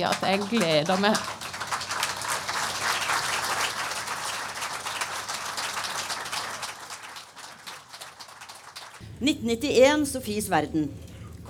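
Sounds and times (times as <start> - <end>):
speech: 0.0 - 1.5, 9.2 - 11.4
audience applause: 0.0 - 9.0.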